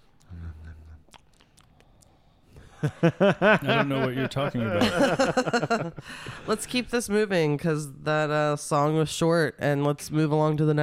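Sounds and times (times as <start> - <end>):
person chewing: 0.0 - 2.4
laughter: 2.7 - 6.5
speech: 2.8 - 10.8.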